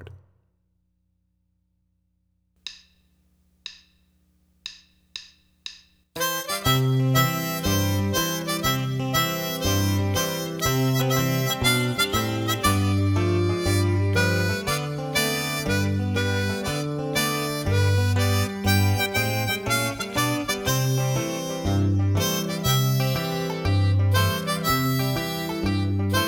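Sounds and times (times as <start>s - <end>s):
harmonica folk tune: 6.2s - 26.2s.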